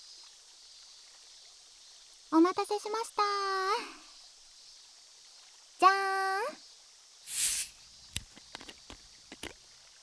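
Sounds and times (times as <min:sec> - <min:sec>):
speech: 0:02.3 - 0:04.0
carbonated water fizzing: 0:07.2 - 0:09.8.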